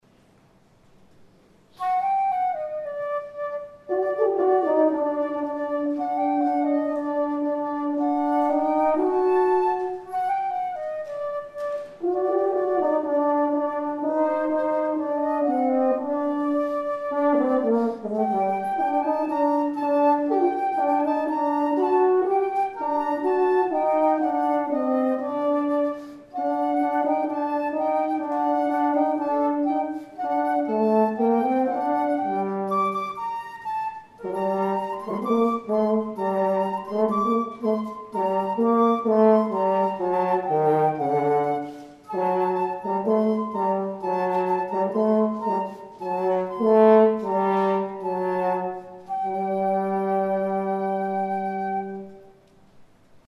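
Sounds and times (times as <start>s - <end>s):
flute and horn duet of a Hasidic melody: 1.7s - 52.7s.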